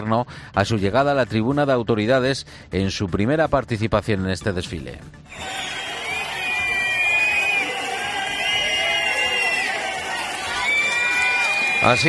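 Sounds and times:
speech: 0:00.0 - 0:05.8, 0:11.8 - 0:12.0
large crowd shouting in jeering disapproval: 0:05.3 - 0:12.0
shrill, sustained whistles from a large crowd: 0:05.3 - 0:12.0.

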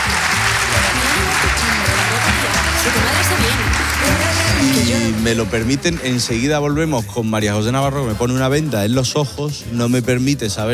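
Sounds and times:
crowd applause: 0:00.0 - 0:06.9
speech: 0:05.2 - 0:10.7.

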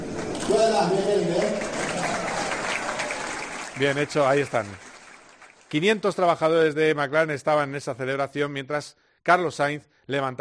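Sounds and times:
crowd applause: 0:00.0 - 0:06.0
speech: 0:00.7 - 0:01.7, 0:03.8 - 0:04.8, 0:05.7 - 0:10.4.

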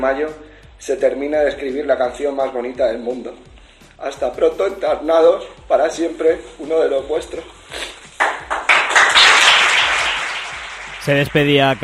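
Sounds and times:
speech: 0:00.0 - 0:07.9, 0:11.1 - 0:11.8
applause from football squad and coaching staff at press conference: 0:08.2 - 0:11.8.

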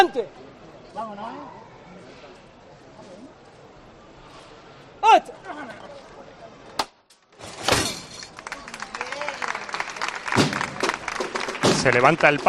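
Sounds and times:
speech: 0:00.2 - 0:01.6, 0:05.1 - 0:06.0, 0:11.8 - 0:12.4
crowd applause in the Plaza Nueva: 0:08.3 - 0:12.4.

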